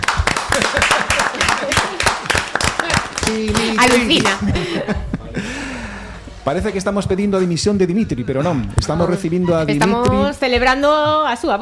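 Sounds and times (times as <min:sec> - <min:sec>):
audience applause: 0:00.0 - 0:04.5
laughter: 0:00.4 - 0:06.2, 0:08.0 - 0:10.0
speech: 0:03.3 - 0:05.5, 0:06.4 - 0:11.6.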